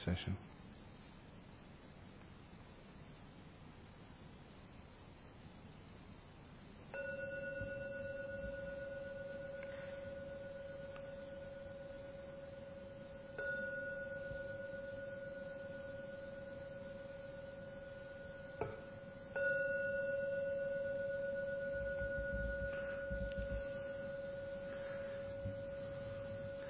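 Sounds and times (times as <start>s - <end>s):
gong ringing: 7.0s - 26.6s.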